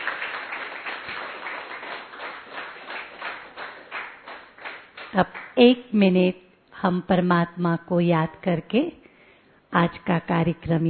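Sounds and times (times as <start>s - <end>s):
audience applause: 0.0s - 5.5s
speech: 5.1s - 9.0s, 9.7s - 10.8s.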